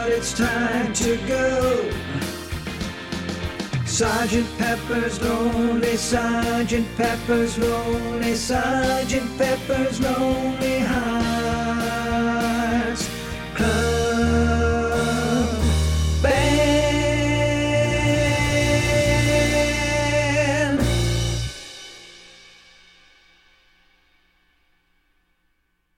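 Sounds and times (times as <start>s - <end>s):
isolated baritone voice singing a practice track: 0.0s - 2.8s, 3.8s - 21.5s.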